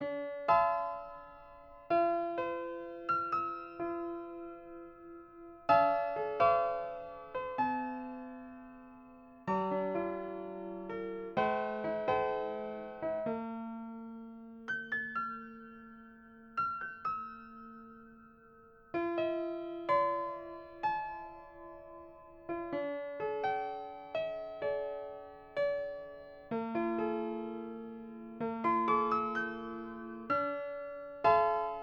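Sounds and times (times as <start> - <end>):
piano bar music: 0.0 - 31.8.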